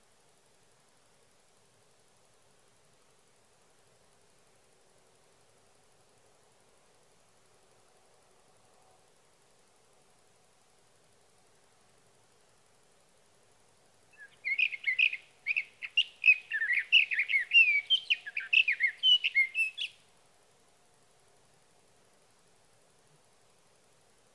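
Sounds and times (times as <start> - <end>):
Sage thrasher singing at night: 14.2 - 20.0.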